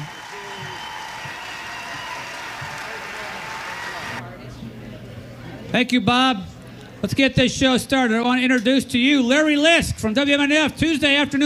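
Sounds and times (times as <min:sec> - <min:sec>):
audience applause: 0:00.0 - 0:04.2
speech: 0:05.7 - 0:11.4.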